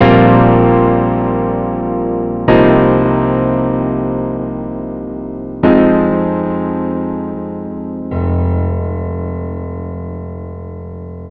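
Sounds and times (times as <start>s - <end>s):
keyboard music in F minor at 160 BPM: 0.0s - 11.2s.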